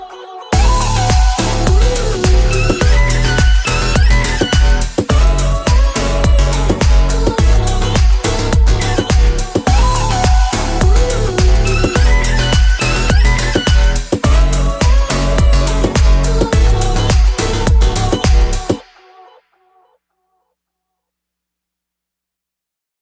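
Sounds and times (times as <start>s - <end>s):
instrumental music: 0.5s - 18.8s.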